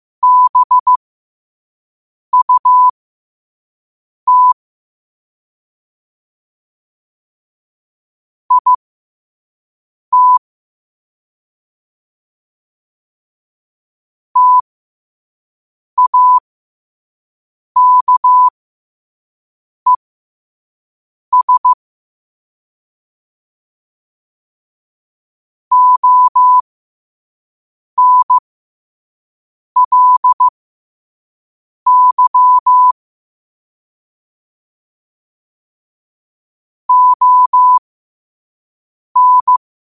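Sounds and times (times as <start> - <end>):
morse code at 5 wpm: 0.2 - 1.0, 2.4 - 2.9, 4.3 - 4.6, 8.5 - 8.8, 10.2 - 10.4, 14.4 - 14.6, 16.0 - 16.4, 17.8 - 18.5, 21.3 - 21.8, 25.7 - 26.6, 28.0 - 28.4, 29.8 - 30.5, 31.9 - 33.0, 36.9 - 37.8, 39.2 - 39.6.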